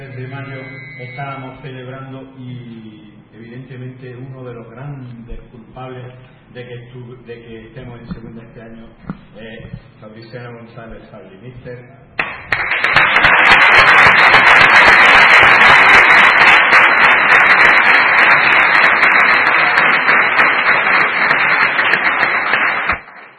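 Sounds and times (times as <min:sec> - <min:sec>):
crowd applause: 0:00.0 - 0:01.2, 0:12.2 - 0:23.3
speech: 0:00.2 - 0:12.7.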